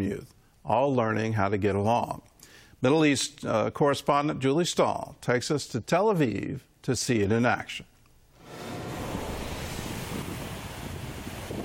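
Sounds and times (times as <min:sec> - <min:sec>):
speech: 0:00.0 - 0:07.9
ocean surf washing onto a beach: 0:08.4 - 0:11.6
wind rushing: 0:08.4 - 0:11.6.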